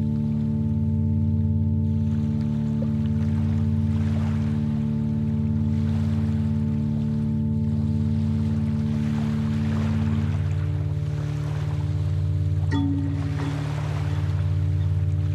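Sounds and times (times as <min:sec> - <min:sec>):
binaural beat low tones pulsing: 0:00.0 - 0:15.3
soft watery wash: 0:00.0 - 0:15.3
brief brighter tone: 0:12.7 - 0:15.0.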